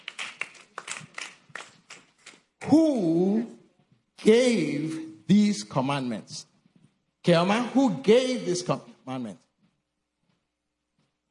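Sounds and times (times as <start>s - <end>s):
scattered audience hand clapping in a classroom-style gathering: 0.0s - 2.5s
speech: 2.6s - 3.5s, 4.2s - 6.5s, 7.2s - 9.4s.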